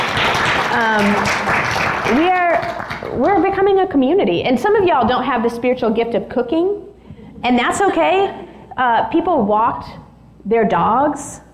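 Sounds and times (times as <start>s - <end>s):
group clapping: 0.0s - 3.6s
speech: 0.7s - 1.4s, 2.1s - 2.4s, 3.2s - 11.4s.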